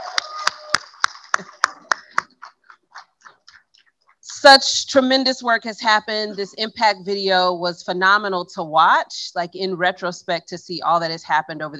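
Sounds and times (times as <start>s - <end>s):
people cheering: 0.0s - 3.0s
people clapping: 0.0s - 3.8s
speech: 4.4s - 11.7s.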